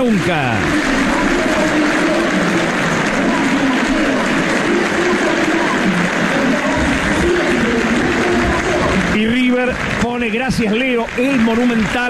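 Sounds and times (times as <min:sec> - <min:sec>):
speech: 0:00.0 - 0:01.3, 0:09.6 - 0:12.0
stadium crowd applauding: 0:00.0 - 0:12.0.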